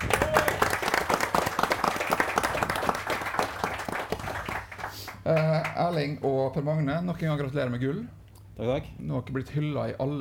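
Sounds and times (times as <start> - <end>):
audience applause: 0.0 - 5.8
speech: 5.3 - 10.1.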